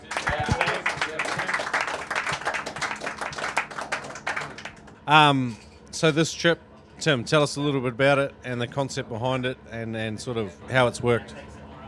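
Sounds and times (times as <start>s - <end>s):
applause for the trip organiser: 0.0s - 5.0s
speech: 5.1s - 11.5s.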